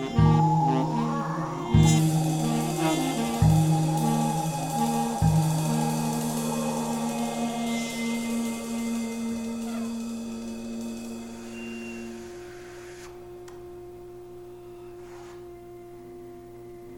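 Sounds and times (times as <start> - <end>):
improvised music: 0.0 - 12.1.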